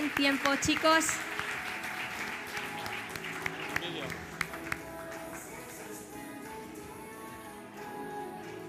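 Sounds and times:
audience applause: 0:00.0 - 0:05.8
speech: 0:00.1 - 0:01.4.

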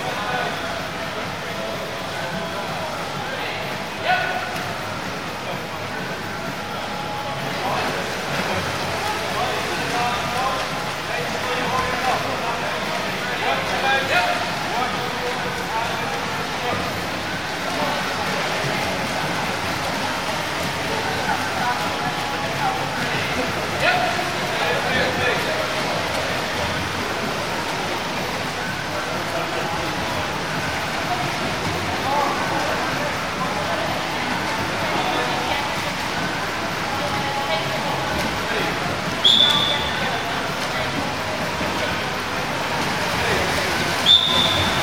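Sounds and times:
swimmers' and divers' voices: 0:00.0 - 0:44.8
swimmers and divers splashing: 0:06.2 - 0:44.8
high whistle-like tone: 0:39.2 - 0:40.0, 0:44.0 - 0:44.8.

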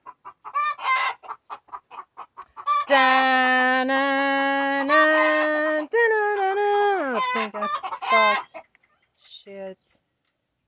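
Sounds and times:
chickens clucking in a homestead barnyard: 0:00.0 - 0:03.0, 0:06.3 - 0:09.2
speech: 0:02.9 - 0:06.0, 0:07.2 - 0:08.6.

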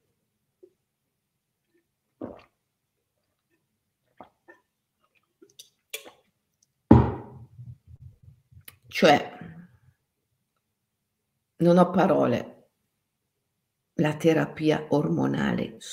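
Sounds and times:
speaker drinking water: 0:01.6 - 0:06.4
speech: 0:09.0 - 0:09.3, 0:11.7 - 0:12.5, 0:14.0 - 0:15.9.

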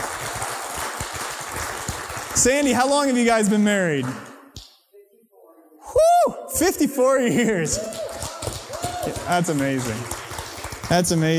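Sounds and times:
audience applause: 0:00.0 - 0:04.3, 0:07.7 - 0:11.3
speech: 0:02.4 - 0:04.3, 0:06.6 - 0:08.0, 0:09.3 - 0:10.2, 0:10.9 - 0:11.3.

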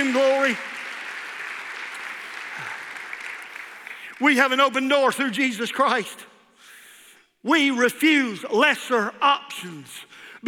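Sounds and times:
speech: 0:00.0 - 0:00.8, 0:04.2 - 0:06.3, 0:07.4 - 0:10.2
audience clapping hands: 0:00.0 - 0:04.6.

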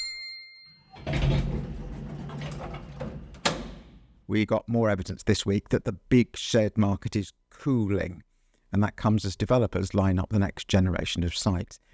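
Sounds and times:
elevator chime: 0:00.0 - 0:03.2
elevator sliding doors and moving car rumbling: 0:00.9 - 0:04.2
speech: 0:04.3 - 0:11.9.

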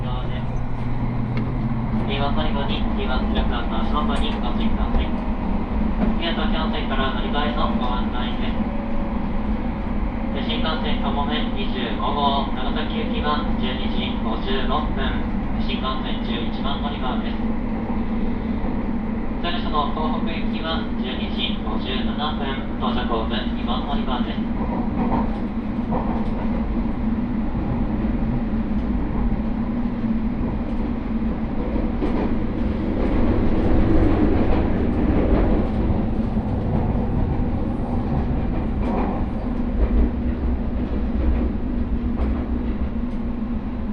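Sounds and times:
limited express Huis Ten Bosch train running toward Takeo Onsen: 0:00.0 - 0:43.9
voices: 0:02.0 - 0:05.3, 0:06.0 - 0:08.7, 0:10.3 - 0:17.5, 0:19.4 - 0:24.6.

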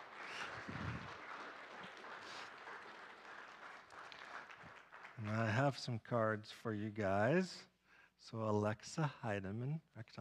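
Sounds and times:
church congregation applause welcoming new members: 0:00.0 - 0:05.8
speech: 0:05.2 - 0:10.2.

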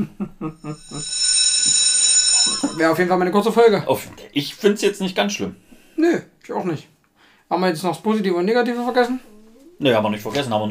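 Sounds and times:
laughter: 0:00.0 - 0:01.1
speech: 0:00.0 - 0:06.9, 0:07.5 - 0:10.7
school bell ringing: 0:00.6 - 0:03.4.

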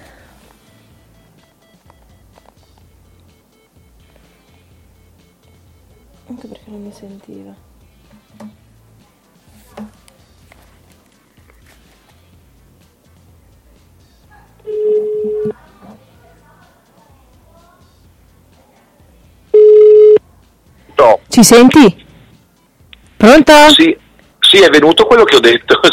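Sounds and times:
speech: 0:06.3 - 0:07.7, 0:21.4 - 0:22.0, 0:23.2 - 0:24.0, 0:24.6 - 0:25.9
telephone tones as a call is redialed: 0:14.7 - 0:15.6, 0:19.6 - 0:20.2.

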